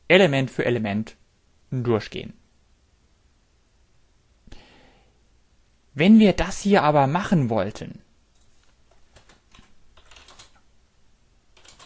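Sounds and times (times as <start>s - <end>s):
speech: 0.1s - 2.4s, 6.0s - 8.0s
quiet typing of code on a computer keyboard: 8.4s - 10.7s, 11.5s - 11.8s.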